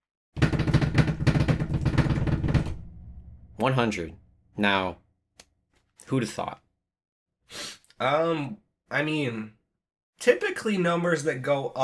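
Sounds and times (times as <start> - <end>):
drum roll: 0.4 - 5.0
speech: 3.6 - 5.0, 6.0 - 6.6, 7.5 - 9.6, 10.2 - 11.8.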